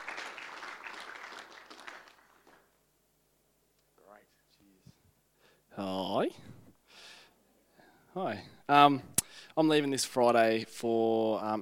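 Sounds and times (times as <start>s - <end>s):
audience applause: 0.0s - 2.8s
speech: 5.8s - 6.5s, 8.2s - 11.5s.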